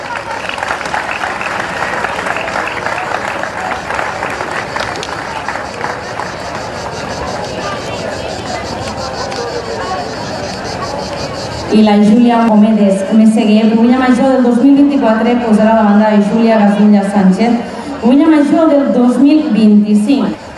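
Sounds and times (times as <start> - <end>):
audience applause: 0.0 - 10.6
speech: 11.7 - 20.4.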